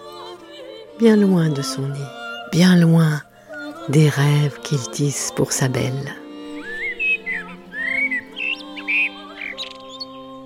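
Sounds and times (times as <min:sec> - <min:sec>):
speech: 0:01.0 - 0:03.3, 0:03.9 - 0:06.2
bird singing at daybreak: 0:04.1 - 0:10.4.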